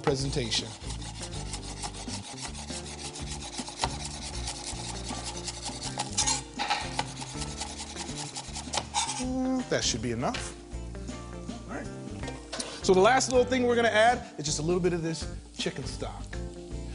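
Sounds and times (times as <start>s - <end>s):
speech: 0.0s - 0.9s, 9.2s - 10.6s, 12.8s - 16.3s
knife slicing green onion on cutting board: 0.0s - 9.2s.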